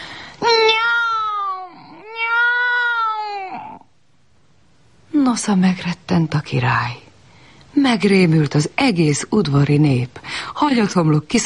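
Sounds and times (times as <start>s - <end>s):
cat yowling loudly: 0.4s - 3.9s
speech: 5.3s - 7.0s, 7.8s - 11.4s.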